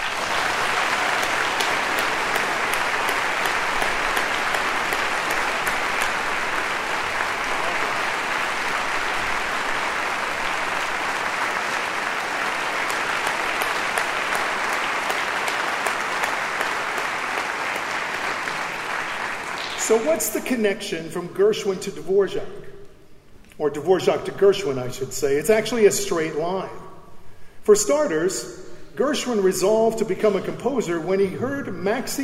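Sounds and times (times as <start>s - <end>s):
orchestra concert audience applause welcoming a soloist: 0.0s - 20.3s
speech: 19.9s - 22.7s, 23.6s - 26.8s, 27.7s - 32.2s.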